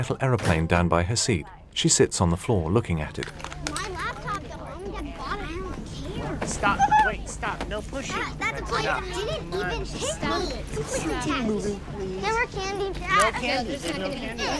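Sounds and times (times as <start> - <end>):
speech: 0.0 - 3.9, 6.4 - 14.5
squabbling children boarding a plane: 3.6 - 14.5.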